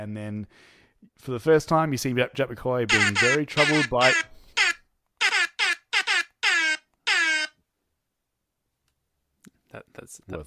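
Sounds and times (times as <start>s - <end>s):
speech: 0.0s - 4.3s, 9.7s - 10.4s
air horn: 2.9s - 7.5s.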